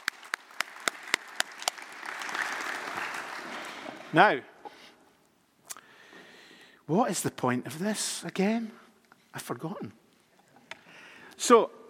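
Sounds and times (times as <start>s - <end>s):
audience applause: 0.0s - 4.2s
speech: 4.1s - 4.5s, 6.9s - 10.0s, 11.4s - 11.8s.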